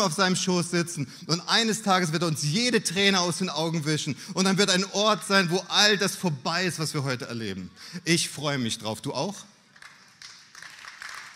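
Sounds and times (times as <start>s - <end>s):
speech: 0.0s - 9.5s
audience clapping: 9.7s - 11.3s.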